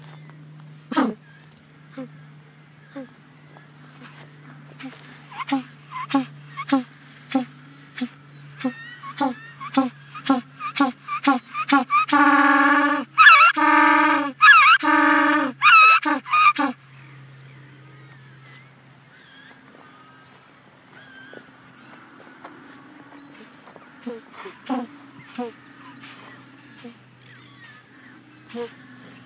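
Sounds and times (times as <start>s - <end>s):
African penguin honking: 4.8s - 16.8s, 23.4s - 27.0s.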